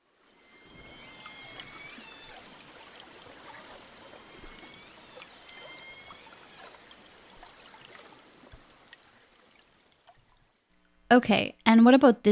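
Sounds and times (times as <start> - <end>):
southern resident killer whale calls: 0.4 - 9.3
speech: 11.1 - 12.2.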